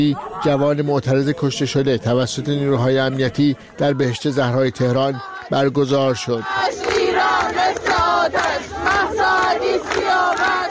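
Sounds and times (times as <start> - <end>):
speech: 0.0 - 7.0
crowd chanting anti-government slogans: 2.6 - 10.6.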